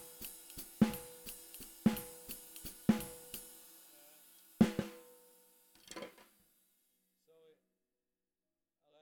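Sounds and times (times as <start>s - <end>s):
snare drum: 0.0s - 3.6s, 4.6s - 5.4s.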